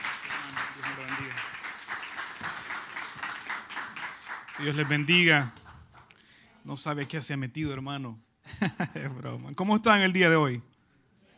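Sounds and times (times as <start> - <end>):
audience applause: 0.0 - 6.1
speech: 4.6 - 5.6, 6.7 - 10.7.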